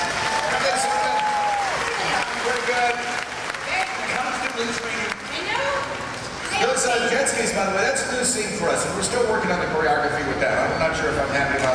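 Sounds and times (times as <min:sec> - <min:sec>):
audience applauding the stunt team: 0:00.0 - 0:07.0
speech: 0:07.2 - 0:11.7.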